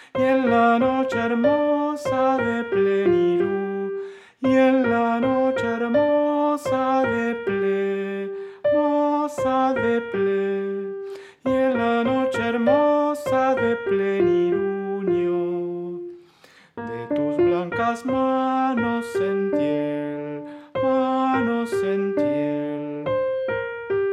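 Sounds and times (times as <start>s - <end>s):
soprano singing passages: 0.0s - 24.1s.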